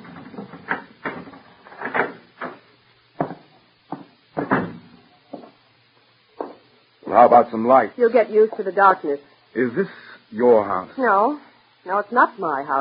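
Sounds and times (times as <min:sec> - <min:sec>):
footsteps on hollow wooden steps: 0:05.3 - 0:05.6, 0:06.4 - 0:06.6
speech: 0:07.2 - 0:12.7.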